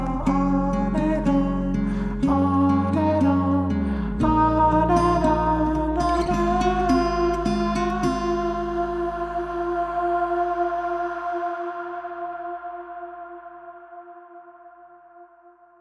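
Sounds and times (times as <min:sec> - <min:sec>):
acoustic music: 0:00.0 - 0:11.5.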